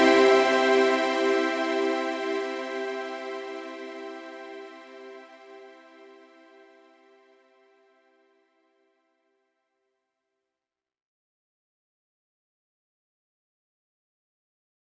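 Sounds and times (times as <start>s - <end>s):
bells: 0.0s - 4.4s
strings: 0.0s - 6.9s.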